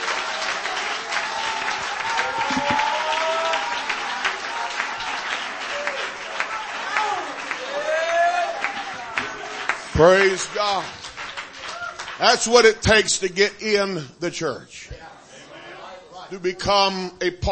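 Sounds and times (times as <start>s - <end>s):
audience clapping hands: 0.0s - 13.2s
speech: 10.0s - 11.0s, 12.2s - 15.1s, 16.3s - 17.5s.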